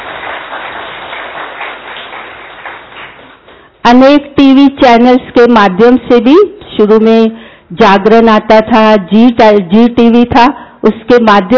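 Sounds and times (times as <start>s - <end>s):
audience applause: 0.0s - 3.6s
speech: 3.9s - 11.5s.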